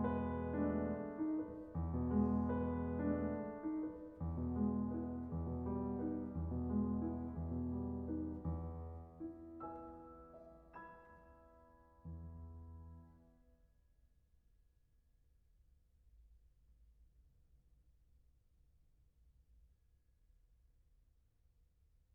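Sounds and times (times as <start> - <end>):
piano arrangement: 0.0 - 13.4.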